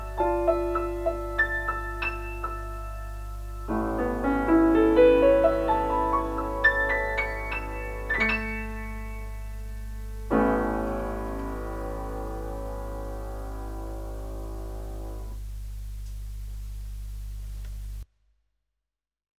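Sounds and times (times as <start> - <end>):
piano: 0.0 - 18.0.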